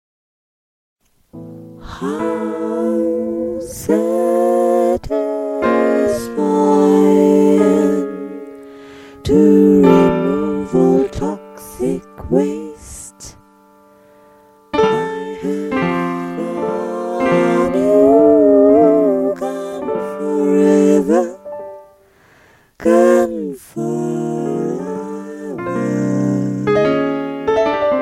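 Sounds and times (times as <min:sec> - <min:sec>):
piano: 0:01.0 - 0:28.0.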